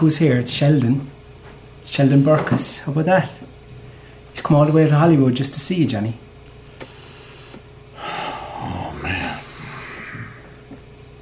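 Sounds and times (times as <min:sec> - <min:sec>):
speech: 0:00.0 - 0:01.2, 0:01.8 - 0:03.5, 0:04.4 - 0:06.2
ventilator life support machine breathing for patient: 0:06.7 - 0:11.0.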